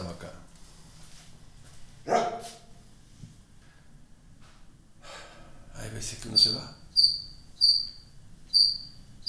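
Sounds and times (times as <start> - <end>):
steady low hum: 0.0 - 9.2
dog barking: 2.1 - 2.7
speech: 6.0 - 6.8.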